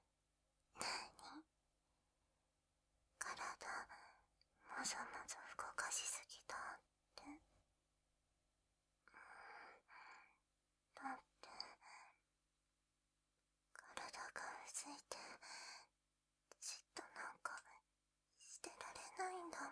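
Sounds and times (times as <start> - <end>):
sweet ASMR whispering: 0.8 - 1.4, 3.2 - 7.4, 11.0 - 12.2, 13.8 - 15.9, 16.5 - 17.8, 18.4 - 19.7.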